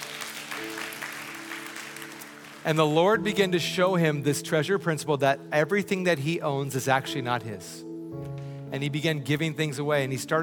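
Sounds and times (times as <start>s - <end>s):
church congregation clapping: 0.0s - 3.2s
speech: 2.6s - 10.4s.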